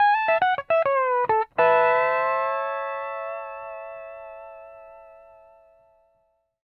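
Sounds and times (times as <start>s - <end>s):
country music ending: 0.0s - 5.0s.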